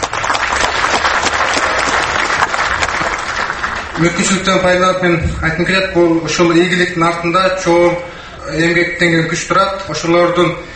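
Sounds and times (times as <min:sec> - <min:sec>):
hometown audience applauding a film award winner: 0:00.0 - 0:04.5
speech: 0:04.0 - 0:10.7.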